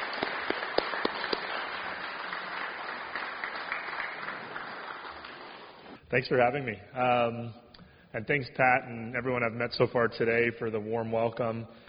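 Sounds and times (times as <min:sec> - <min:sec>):
audience applause: 0:00.0 - 0:06.0
speech: 0:06.1 - 0:11.8.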